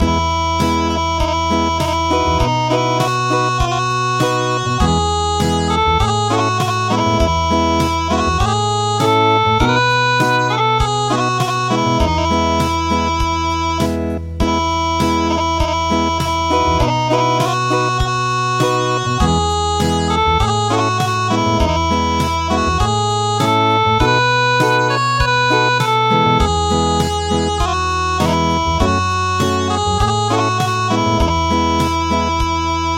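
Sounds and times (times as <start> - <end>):
acoustic music: 0.0 - 32.9.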